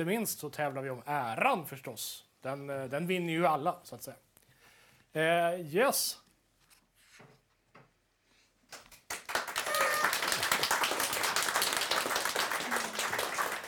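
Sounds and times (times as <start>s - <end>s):
speech: 0.0s - 4.3s, 5.1s - 6.2s
audience applause: 8.7s - 13.6s.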